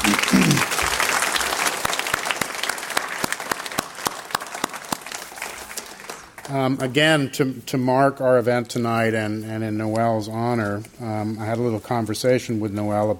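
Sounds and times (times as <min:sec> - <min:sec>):
audience applause: 0:00.0 - 0:06.8
speech: 0:06.5 - 0:13.1.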